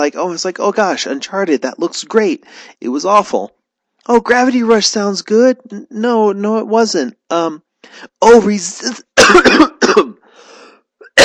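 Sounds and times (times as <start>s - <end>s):
speech: 0.0s - 10.1s
coughing: 9.0s - 11.2s
person choking: 9.2s - 11.2s
throat clearing: 9.2s - 11.2s.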